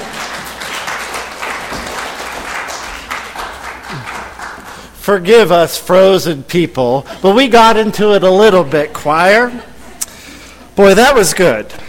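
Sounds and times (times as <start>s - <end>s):
crowd applause: 0.0s - 5.0s
speech: 5.0s - 9.7s, 10.8s - 11.8s.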